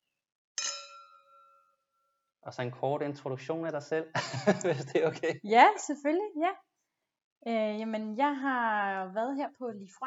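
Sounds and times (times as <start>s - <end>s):
glasses clinking in a toast: 0.6s - 1.8s
speech: 2.4s - 6.7s, 7.4s - 10.0s
laughter: 4.1s - 5.4s.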